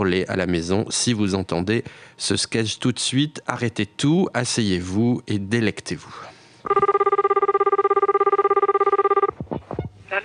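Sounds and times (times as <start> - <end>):
speech: 0.0 - 6.9
telephone ringing: 6.6 - 9.4.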